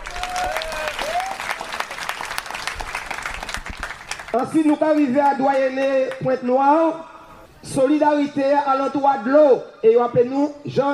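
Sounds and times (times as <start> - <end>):
crowd clapping: 0.0 - 6.2
speech: 4.4 - 10.9.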